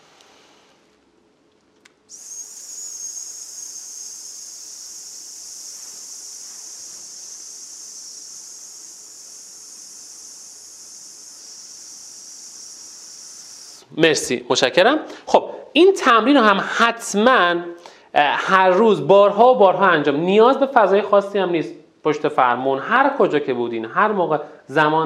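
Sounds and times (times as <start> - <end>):
breath blown out as a hiss imitating a tyre going flat: 2.1 - 13.9
speech: 14.0 - 25.0.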